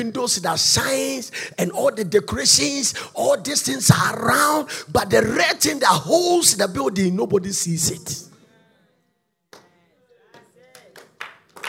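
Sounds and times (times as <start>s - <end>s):
speech: 0.0s - 8.3s
audience clapping: 10.3s - 11.6s.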